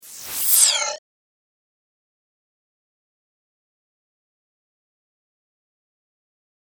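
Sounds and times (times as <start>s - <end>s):
spacecraft sound effects: 0.0s - 1.0s.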